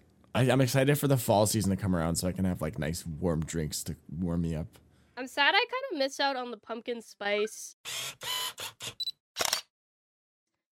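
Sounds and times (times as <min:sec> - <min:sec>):
speech: 0:00.4 - 0:09.0
Snapchat phone app camera-shutter sounds: 0:07.9 - 0:09.7.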